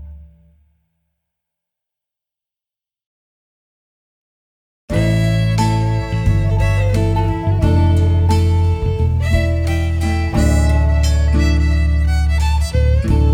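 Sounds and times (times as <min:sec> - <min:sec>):
cowboy music sting: 0:04.9 - 0:13.3.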